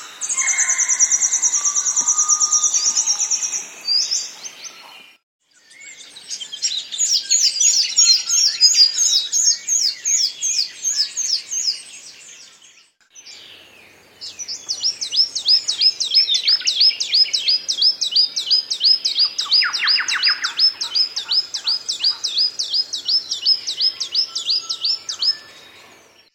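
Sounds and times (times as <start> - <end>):
bird calls: 0.0 - 26.2.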